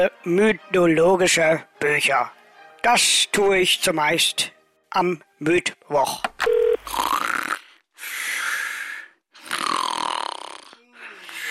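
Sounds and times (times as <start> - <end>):
speech: 0.0 - 7.1
person snoring while asleep: 6.8 - 11.4.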